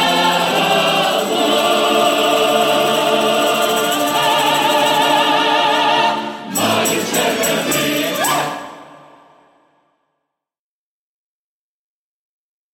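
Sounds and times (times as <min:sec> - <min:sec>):
instrumental music: 0:00.0 - 0:09.6.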